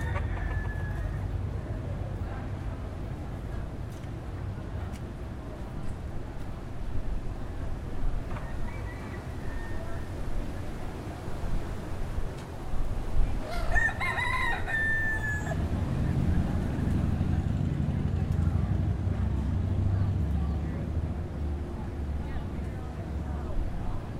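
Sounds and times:
rooster crowing: 0.0 - 1.2, 8.4 - 10.2, 13.4 - 15.6
steady low engine-like rumble: 0.0 - 24.1.

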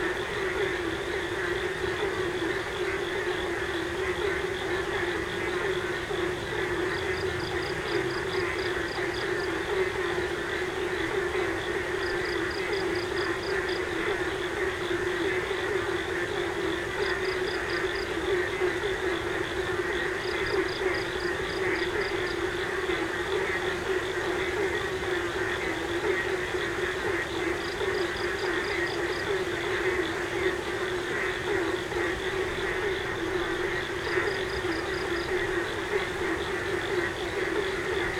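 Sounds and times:
frogs at night in Yogyakarta: 0.0 - 38.1.

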